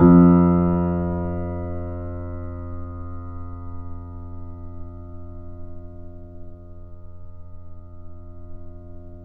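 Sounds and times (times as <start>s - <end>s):
grand piano: 0.0s - 5.8s.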